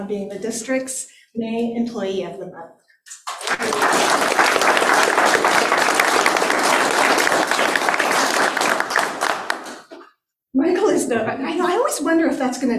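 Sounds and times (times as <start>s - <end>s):
speech: 0.0s - 6.2s, 10.6s - 12.7s
audience applause at a district commission meeting honoring an employee of the month: 3.3s - 10.0s.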